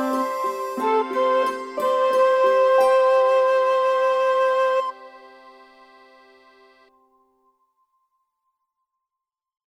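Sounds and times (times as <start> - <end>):
backing music: 0.0 - 6.9.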